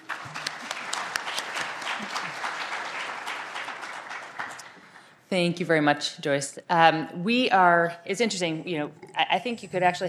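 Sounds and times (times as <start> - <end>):
audience applauding a conference panel: 0.0 - 5.1
speech: 5.3 - 10.0.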